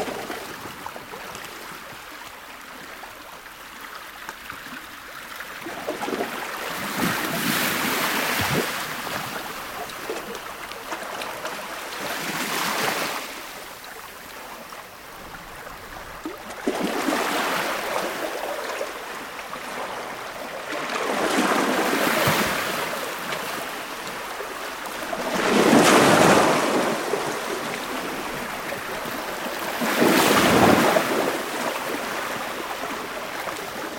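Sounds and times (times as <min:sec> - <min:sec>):
ocean waves on harbour shoreline: 0:00.0 - 0:33.9.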